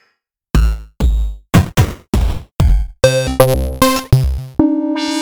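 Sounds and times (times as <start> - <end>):
8-bit drum kit: 0.6 - 5.1
chiptune game music: 3.0 - 5.1.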